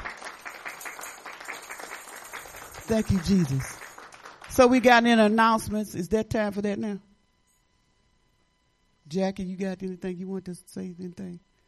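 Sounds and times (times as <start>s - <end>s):
church congregation clapping as a clap offering: 0.0s - 5.1s
speech: 2.9s - 3.8s, 4.6s - 7.1s, 9.1s - 11.5s.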